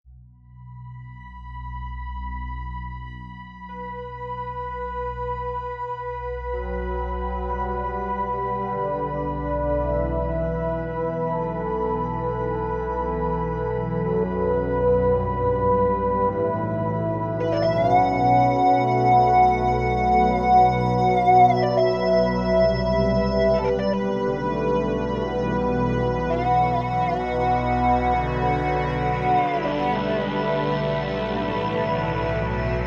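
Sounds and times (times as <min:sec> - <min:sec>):
Oberheim OB-Xa synthesizer: 0:00.2 - 0:32.8.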